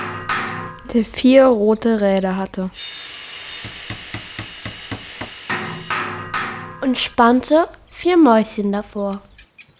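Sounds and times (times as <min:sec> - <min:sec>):
hammer blows: 0:00.0 - 0:01.0, 0:02.8 - 0:08.0
speech: 0:00.9 - 0:03.8, 0:06.8 - 0:09.3.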